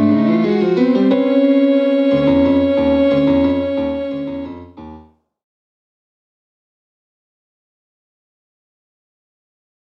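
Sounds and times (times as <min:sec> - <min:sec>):
music: 0:00.0 - 0:05.4.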